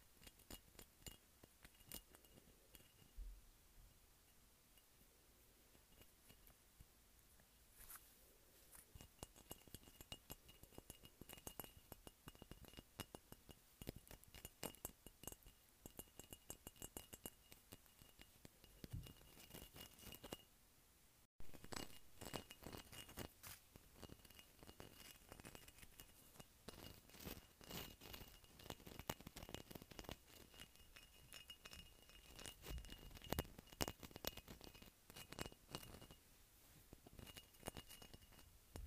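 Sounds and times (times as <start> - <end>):
fingertips tapping on bumpy glass: 0.0 - 3.4, 8.9 - 20.4, 21.4 - 36.2, 37.0 - 38.8.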